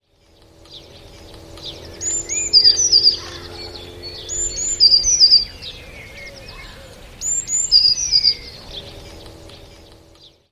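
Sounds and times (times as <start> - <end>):
steady low hum: 0.0 - 10.5
songbird song of thin whistles and trills: 0.7 - 8.6.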